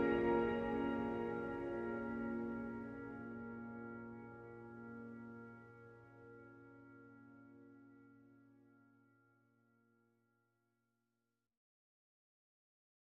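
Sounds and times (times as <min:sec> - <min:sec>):
pianos: 0:00.0 - 0:09.3.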